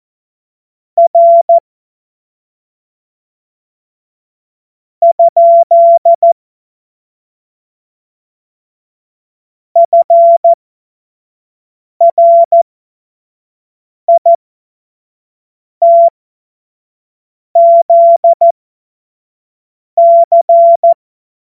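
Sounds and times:
CW Morse code beeps: 1.0s - 1.6s, 5.0s - 6.4s, 9.8s - 10.6s, 12.0s - 12.6s, 14.1s - 14.4s, 15.8s - 16.1s, 17.6s - 18.5s, 20.0s - 21.0s.

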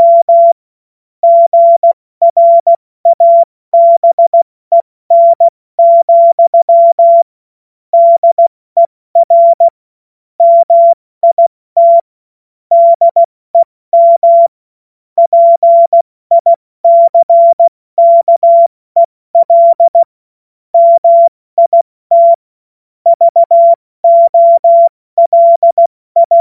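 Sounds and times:
morse code beeps: 0.0s - 0.6s, 1.2s - 7.3s, 8.0s - 9.8s, 10.4s - 12.1s, 12.7s - 14.5s, 15.2s - 18.7s, 19.4s - 20.1s, 20.8s - 22.4s, 23.1s - 26.4s.

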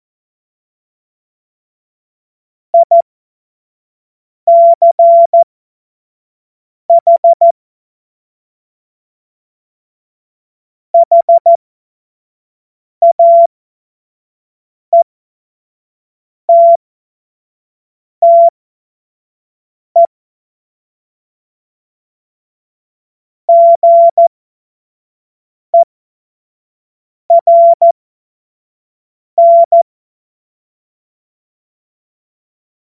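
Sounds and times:
morse code beeps: 2.8s - 3.0s, 4.5s - 5.4s, 6.9s - 7.5s, 11.0s - 11.6s, 13.0s - 13.5s, 16.5s - 16.8s, 18.2s - 18.5s, 23.5s - 24.3s, 27.3s - 28.0s, 29.4s - 29.8s.

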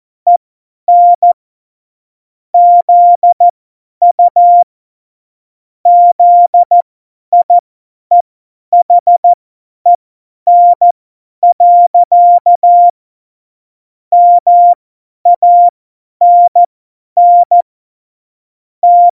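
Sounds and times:
CW Morse code at tempo 70: 0.3s - 1.4s, 2.6s - 3.5s, 4.1s - 4.7s, 5.9s - 6.8s, 8.8s - 9.4s, 10.5s - 13.0s, 14.2s - 17.6s, 18.8s - 19.1s.

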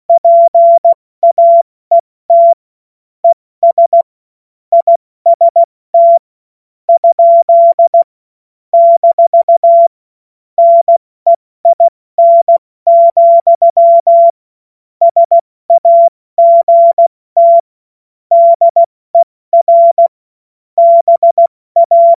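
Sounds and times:
CW Morse code beeps: 0.1s - 2.6s, 3.2s - 4.1s, 4.7s - 6.2s, 7.0s - 8.1s, 8.8s - 9.9s, 10.6s - 14.4s, 15.0s - 17.6s, 18.3s - 20.1s, 20.8s - 22.1s.

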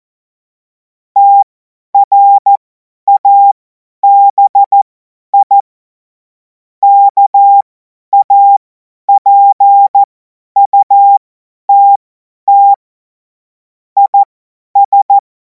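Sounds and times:
morse code CW: 1.2s - 5.6s, 6.8s - 8.6s, 9.1s - 11.2s, 11.7s - 12.8s, 14.0s - 14.2s, 14.8s - 15.2s.

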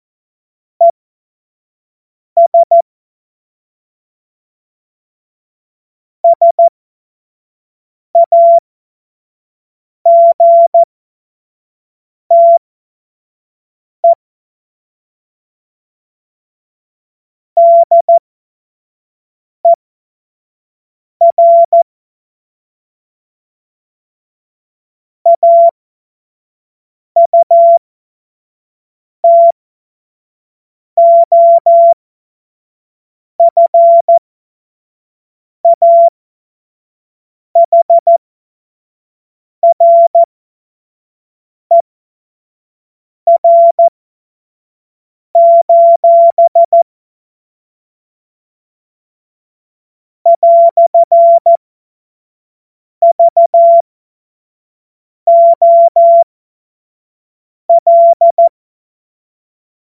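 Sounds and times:
CW Morse code beeps: 2.4s - 2.8s, 6.2s - 6.7s, 8.2s - 8.6s, 10.1s - 10.9s, 12.3s - 12.6s, 17.6s - 18.2s, 21.2s - 21.8s, 25.3s - 25.8s, 27.2s - 27.8s, 29.2s - 29.6s, 31.0s - 32.0s, 33.4s - 34.2s, 35.6s - 36.1s, 37.6s - 38.2s, 39.6s - 40.3s, 43.3s - 43.9s, 45.4s - 46.8s, 50.3s - 51.6s, 53.0s - 53.9s, 55.3s - 56.3s, 57.7s - 58.6s.

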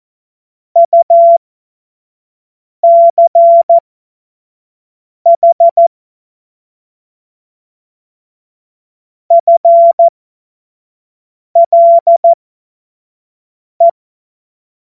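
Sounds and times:
Morse code course tones: 0.8s - 1.4s, 2.8s - 3.8s, 5.3s - 5.9s, 9.3s - 10.1s, 11.6s - 12.4s.

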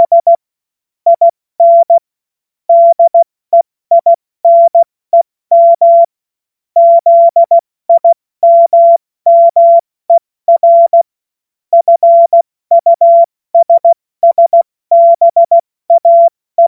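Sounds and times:
CW Morse code beeps: 0.0s - 0.4s, 1.1s - 2.0s, 2.7s - 4.9s, 5.5s - 6.1s, 6.8s - 11.1s, 11.7s - 16.6s.

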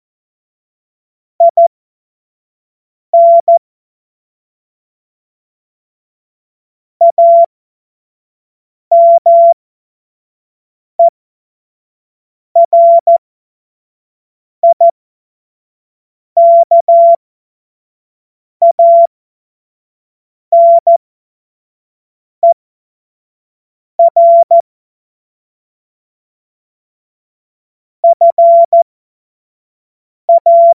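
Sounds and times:
CW Morse code beeps: 1.4s - 1.7s, 3.1s - 3.6s, 7.0s - 7.5s, 8.9s - 9.6s, 12.6s - 13.2s, 16.4s - 17.2s, 18.7s - 19.1s, 20.5s - 21.0s, 24.0s - 24.7s, 28.1s - 28.9s, 30.3s - 30.7s.

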